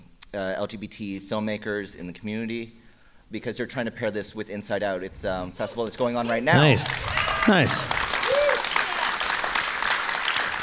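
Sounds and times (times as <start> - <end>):
speech: 0.3 - 8.2
audience applause at a film festival fundraiser screening: 6.6 - 10.6
whoop or whistle: 7.0 - 8.7.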